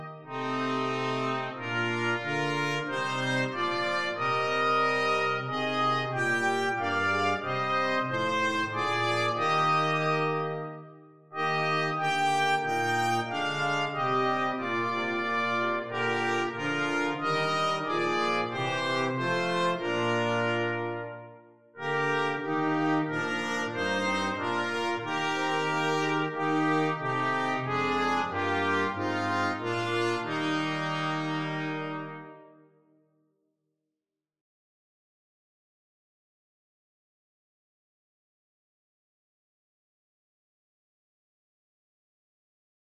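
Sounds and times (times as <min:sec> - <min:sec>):
brass quartet playing: 0:00.0 - 0:32.6.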